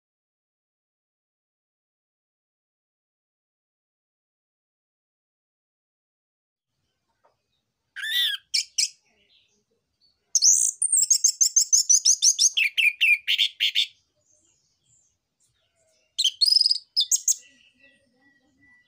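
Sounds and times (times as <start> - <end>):
orange-headed thrush singing buzzy notes, varied whistles and sharp clicks: 10.4 - 13.8, 16.2 - 17.4.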